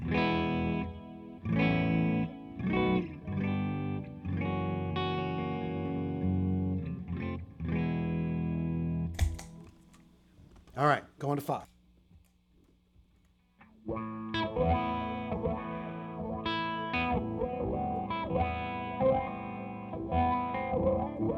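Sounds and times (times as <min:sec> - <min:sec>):
clean dry electric guitar chords, humbucker guitar in middle pickup position: 0:00.0 - 0:09.4, 0:13.6 - 0:21.3
speech: 0:10.8 - 0:11.7.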